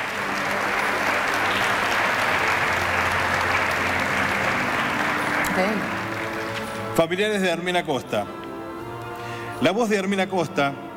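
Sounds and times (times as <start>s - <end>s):
strong applause from a large crowd: 0.0s - 7.5s
speech: 5.6s - 6.0s, 7.0s - 8.4s, 9.6s - 10.8s.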